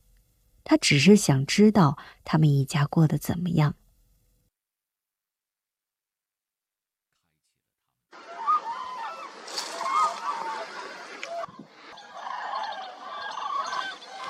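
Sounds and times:
speech: 0.7 - 3.8
hundreds of cranes calling at wintering ground by the Nyang River, Nyingchi, Tibet: 8.2 - 14.2.

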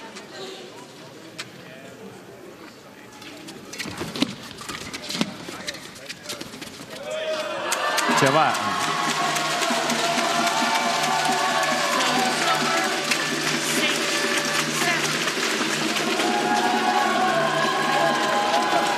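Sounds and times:
excited stadium crowd cheering: 7.0 - 18.9
speech: 8.2 - 8.9.

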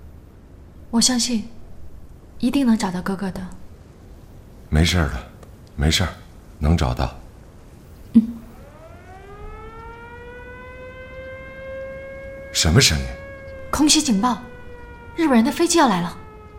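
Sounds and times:
speech: 0.9 - 1.6, 2.4 - 3.6, 4.7 - 7.2, 12.6 - 14.5, 15.2 - 16.2
air raid siren: 8.4 - 16.5.

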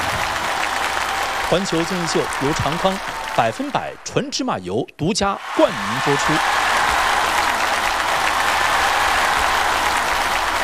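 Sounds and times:
sustained applause from a large audience: 0.0 - 4.3, 5.4 - 10.6
speech: 1.5 - 6.6.

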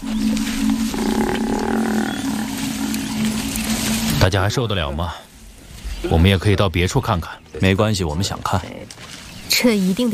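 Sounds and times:
African buffalo calling to herd: 0.0 - 4.2
speech: 4.2 - 5.3, 6.0 - 10.1.

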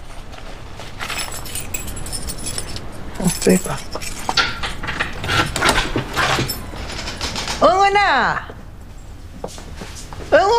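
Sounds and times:
keys jangling: 0.8 - 7.6
speech: 3.2 - 4.0, 7.9 - 8.5, 10.4 - 10.5.

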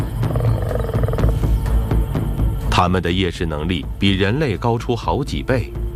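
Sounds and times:
lions roaring at night: 0.0 - 1.5
speech: 2.8 - 5.8.

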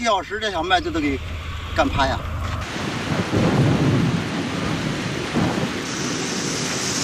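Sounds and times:
speech: 0.0 - 2.8
strong wind and storm: 0.0 - 7.0.

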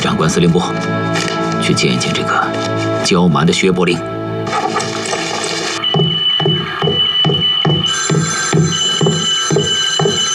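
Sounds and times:
speech: 0.2 - 4.2
telephone ringing: 4.5 - 10.3.

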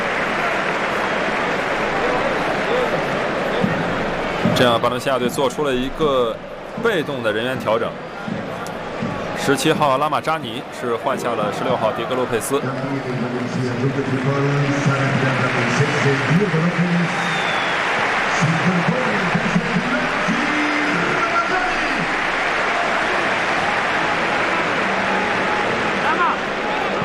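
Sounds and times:
spectators applauding at football match: 0.0 - 5.5, 11.2 - 27.0
speech: 4.6 - 8.5, 9.5 - 17.5.

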